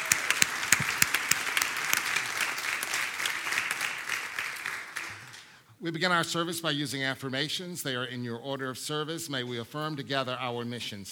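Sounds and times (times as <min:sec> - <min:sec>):
audience applause: 0:00.0 - 0:05.4
speech: 0:05.8 - 0:11.1.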